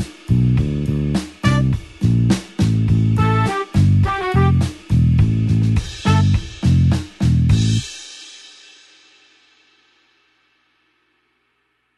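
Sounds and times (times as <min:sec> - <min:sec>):
blues horns: 0:01.2 - 0:07.8.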